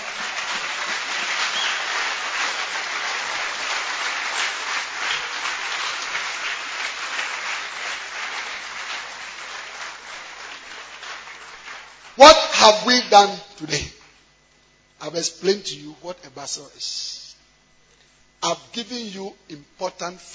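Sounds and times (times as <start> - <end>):
audience clapping hands: 0.0 - 14.1
speech: 12.2 - 14.0, 15.0 - 17.1, 18.4 - 20.3.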